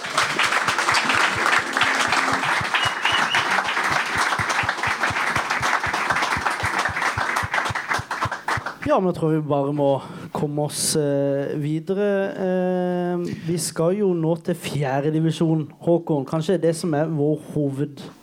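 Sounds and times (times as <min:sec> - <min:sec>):
audience applause: 0:00.0 - 0:08.8
speech: 0:08.9 - 0:18.2.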